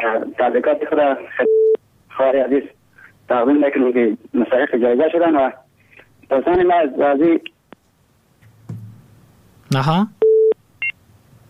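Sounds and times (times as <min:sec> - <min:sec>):
speech: 0:00.1 - 0:05.6, 0:06.3 - 0:07.5, 0:09.7 - 0:10.2
higher two-tone dropped-call beep: 0:10.2 - 0:10.6.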